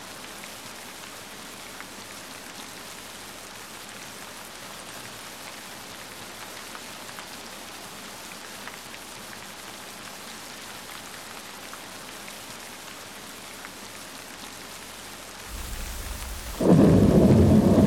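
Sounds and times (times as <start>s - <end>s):
rain: 0.0s - 17.8s
thunder: 15.5s - 17.8s.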